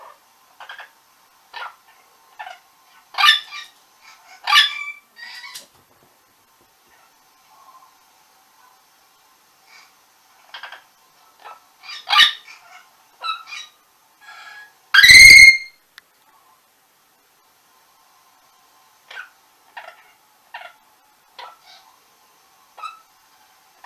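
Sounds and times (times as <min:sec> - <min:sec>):
orange-winged amazon screeching and chattering: 0:00.6 - 0:00.9, 0:02.4 - 0:05.6, 0:10.5 - 0:15.7, 0:22.8 - 0:23.1.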